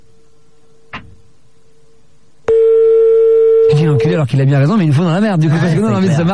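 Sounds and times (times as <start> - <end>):
phone ringing unanswered: 2.5 - 4.3
speech: 3.8 - 6.3.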